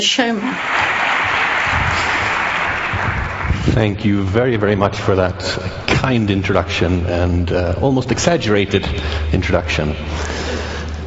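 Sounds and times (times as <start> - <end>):
speech: 0.0 - 0.9, 3.8 - 10.7
applause: 0.4 - 4.1.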